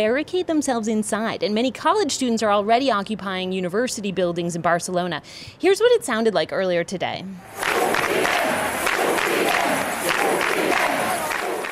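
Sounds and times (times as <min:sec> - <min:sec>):
speech: 0:00.0 - 0:08.8
rally crowd shaking sets of keys in the air: 0:07.6 - 0:11.7.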